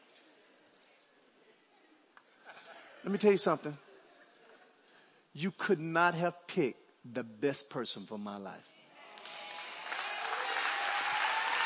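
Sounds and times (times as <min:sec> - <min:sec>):
speech: 0:03.0 - 0:03.8, 0:05.4 - 0:08.8
audience clapping: 0:09.1 - 0:11.6.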